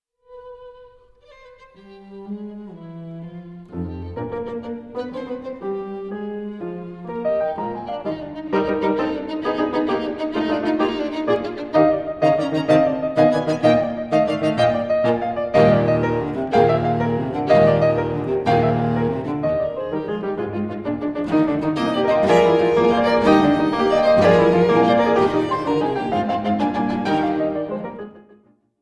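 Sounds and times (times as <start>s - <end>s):
piano and strings trio in E flat major scherzo: 0.3s - 28.5s.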